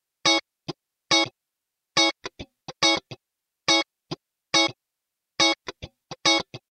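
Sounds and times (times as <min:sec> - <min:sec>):
acoustic guitar rhythm: 0:02.0 - 0:03.2, 0:05.4 - 0:06.6.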